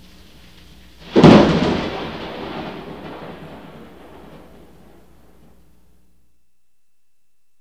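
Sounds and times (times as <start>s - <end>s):
thunder: 1.0s - 5.6s.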